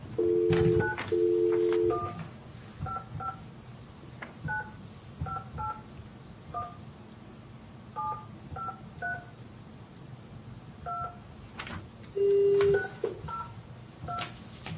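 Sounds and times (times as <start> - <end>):
telephone keypad dialing a number: 0.2 - 2.2, 2.9 - 3.4, 4.5 - 5.8, 8.0 - 9.3, 12.2 - 14.3.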